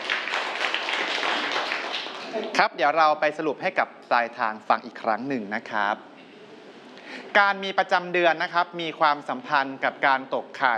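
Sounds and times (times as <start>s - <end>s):
students applauding: 0.0s - 2.6s
speech: 2.6s - 6.1s, 7.3s - 10.7s.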